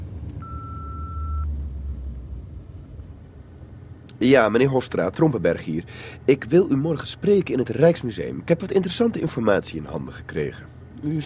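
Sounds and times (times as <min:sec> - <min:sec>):
low rumbling hum: 0:00.0 - 0:11.2
answering machine beep: 0:00.4 - 0:01.5
speech: 0:04.2 - 0:11.2.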